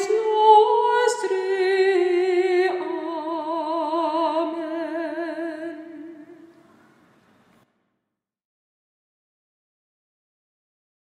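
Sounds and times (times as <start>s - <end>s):
Gregorian chant: 0.0s - 6.9s.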